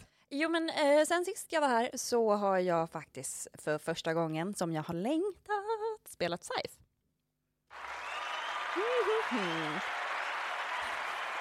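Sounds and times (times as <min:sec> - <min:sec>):
speech: 0:00.3 - 0:06.9, 0:08.8 - 0:10.0
applause: 0:07.7 - 0:11.3.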